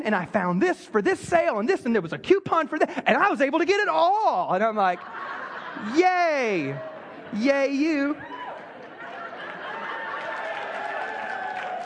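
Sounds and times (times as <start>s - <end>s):
speech: 0.0s - 8.3s
laughter: 4.6s - 11.5s
audience clapping: 8.3s - 11.8s.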